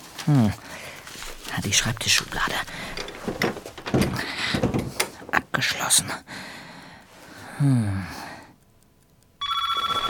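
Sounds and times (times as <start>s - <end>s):
speech: 0.2s - 0.7s, 1.6s - 4.3s, 5.9s - 6.5s, 7.6s - 8.2s
telephone ringing: 9.4s - 10.0s.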